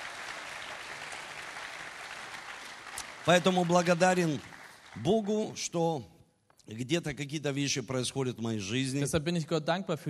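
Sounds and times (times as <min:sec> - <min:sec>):
audience applause: 0:00.0 - 0:05.7
speech: 0:03.2 - 0:10.0.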